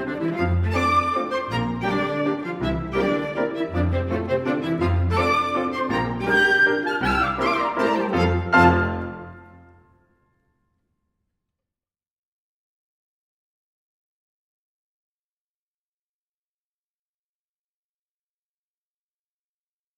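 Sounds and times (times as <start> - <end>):
polka mazurka music for grands battements preparation: 0.0 - 9.6.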